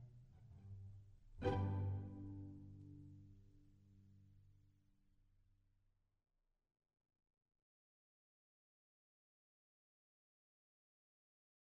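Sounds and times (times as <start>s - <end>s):
pizzicato jazz music: 1.3s - 3.1s.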